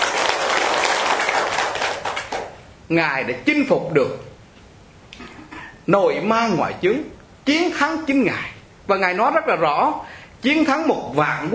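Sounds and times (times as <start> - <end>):
audience applauding during a Vietnamese Buddhist dharma talk: 0.0 - 2.6
speech: 2.9 - 4.3, 5.9 - 11.5.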